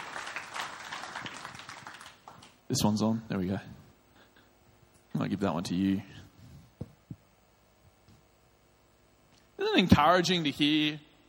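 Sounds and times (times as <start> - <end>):
audience applause: 0.0 - 2.6
speech: 2.7 - 3.8, 5.2 - 6.2, 9.8 - 11.1.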